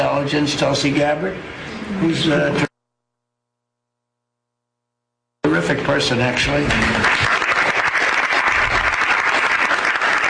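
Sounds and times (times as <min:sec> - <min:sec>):
speech: 0:00.2 - 0:02.7, 0:05.5 - 0:07.3
applause after a cabinet meeting: 0:06.6 - 0:10.2.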